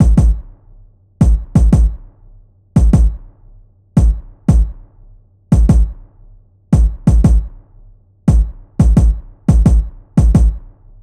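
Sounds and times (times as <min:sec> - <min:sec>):
kick drum: 0:00.0 - 0:00.6, 0:01.2 - 0:02.2, 0:02.8 - 0:03.4, 0:04.0 - 0:04.9, 0:05.5 - 0:07.7, 0:08.3 - 0:10.8.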